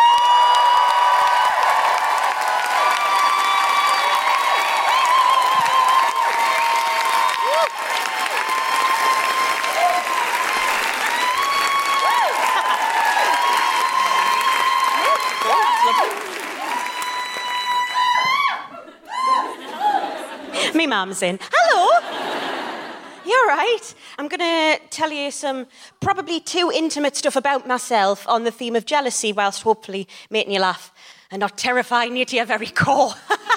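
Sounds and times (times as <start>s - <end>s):
audience cheering and whooping: 0.0s - 20.5s
laughter: 12.4s - 13.4s, 18.7s - 20.7s, 21.7s - 23.2s
speech: 20.9s - 22.0s, 23.3s - 33.5s.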